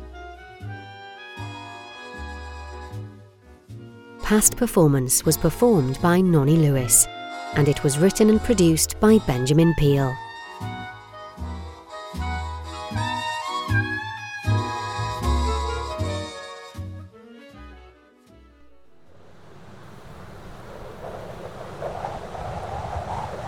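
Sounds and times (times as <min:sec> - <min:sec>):
music: 0:00.0 - 0:19.1
speech: 0:04.3 - 0:10.2
wintry wind roaring: 0:18.6 - 0:23.4.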